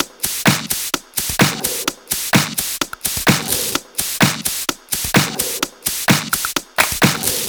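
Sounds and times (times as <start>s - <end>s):
electro loop: 0.0s - 7.4s.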